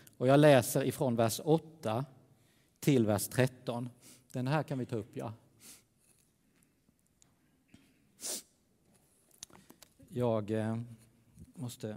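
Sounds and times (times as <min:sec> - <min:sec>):
speech: 0:00.2 - 0:02.2, 0:02.8 - 0:05.8, 0:08.2 - 0:08.4, 0:10.1 - 0:11.0, 0:11.6 - 0:11.9
sniff or quick nose blow: 0:08.2 - 0:08.6.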